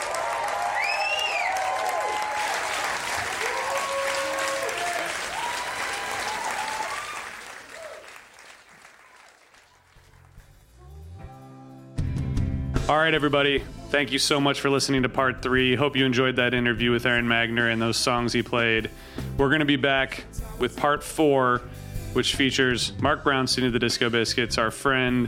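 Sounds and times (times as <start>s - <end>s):
audience clapping and cheering for a musician: 0.0s - 10.8s
rising and falling whistles: 0.7s - 1.7s
speech: 12.9s - 25.2s.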